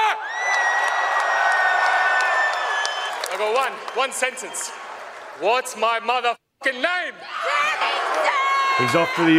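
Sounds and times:
home crowd cheering at fight: 0.0 - 6.1, 7.2 - 9.3
whoops and whistles: 2.3 - 3.3
speech: 3.4 - 9.3.

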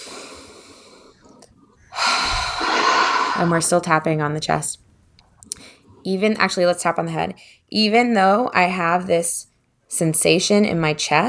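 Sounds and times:
deep breath during a tapping exercise: 0.0 - 6.0
speech: 3.4 - 4.9, 6.0 - 11.2.

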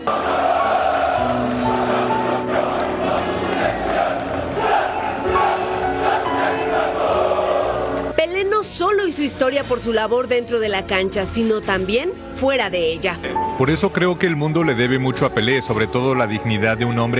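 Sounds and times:
Maracaná stadium crowd ovation: 0.0 - 8.1
speech: 9.2 - 17.1.

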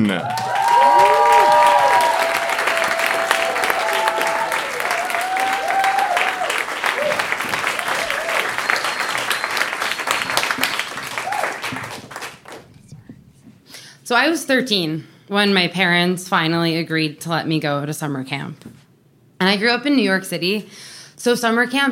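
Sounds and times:
speech: 0.0 - 0.4, 14.1 - 18.8, 19.4 - 21.8
audience applause: 0.0 - 12.7.

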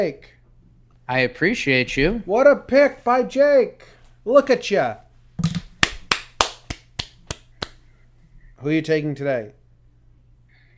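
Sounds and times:
speech: 0.0 - 0.4, 1.1 - 5.6, 8.6 - 9.6
sharp hand claps: 5.4 - 7.8.

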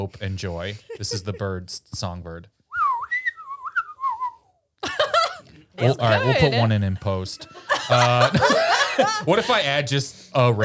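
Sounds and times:
speech: 0.0 - 2.6, 5.8 - 10.6
laughter: 0.7 - 1.8, 4.8 - 9.8
person whistling a tune through the teeth: 2.7 - 4.6.

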